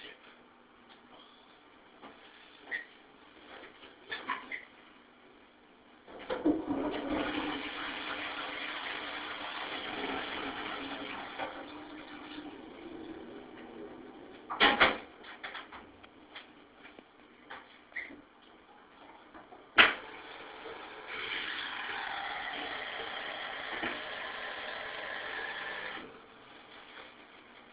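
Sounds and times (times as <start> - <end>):
toilet: 6.1 - 16.1, 18.0 - 27.1.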